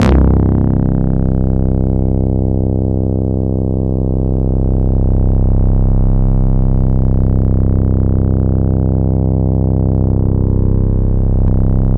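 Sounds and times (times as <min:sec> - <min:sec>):
Yamaha YX81Z analog bass synth: 0:00.0 - 0:11.9.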